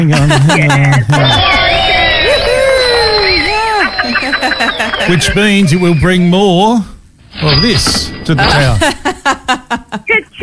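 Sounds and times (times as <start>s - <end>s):
speech: 0.0s - 1.6s, 4.0s - 10.3s
laughter: 0.0s - 6.2s, 8.4s - 10.1s
round of applause: 1.2s - 6.2s.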